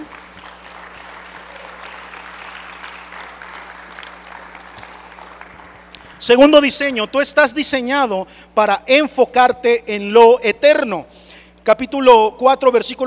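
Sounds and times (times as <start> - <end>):
audience applauding: 0.0 - 6.2
speech: 6.2 - 13.0.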